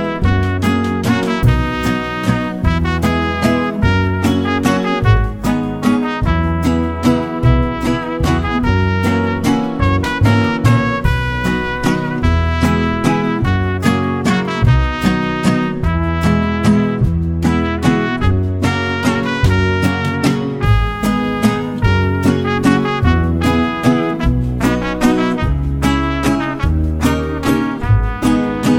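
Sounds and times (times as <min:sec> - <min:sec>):
mariachi waltz with trumpet: 0:00.0 - 0:28.7.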